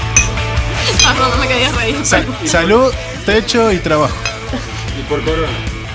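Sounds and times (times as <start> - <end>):
glasses clinking in a toast: 0.2 - 1.6, 4.1 - 4.6
speech: 1.1 - 5.7.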